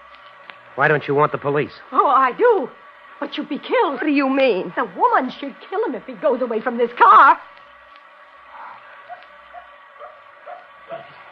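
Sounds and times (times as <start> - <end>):
constant hiss: 0.0 - 11.3
speech: 0.8 - 7.5
dog barking: 9.0 - 11.2.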